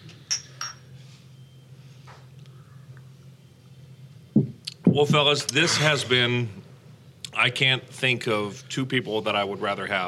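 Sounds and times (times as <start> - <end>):
glasses clinking in a toast: 0.1 - 0.9
speech: 5.0 - 6.6, 7.4 - 10.0.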